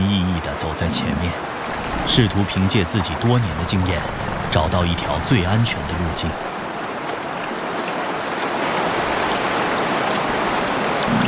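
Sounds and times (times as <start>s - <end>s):
rushing river water: 0.0s - 11.2s
speech: 0.6s - 6.5s.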